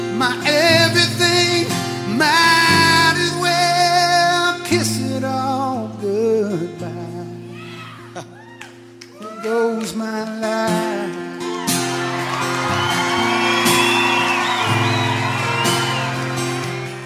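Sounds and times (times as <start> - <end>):
person singing: 0.0 - 8.4, 9.2 - 11.7
sustained music: 0.0 - 17.0
audience applauding and cheering with whoops and shouts: 8.4 - 17.0.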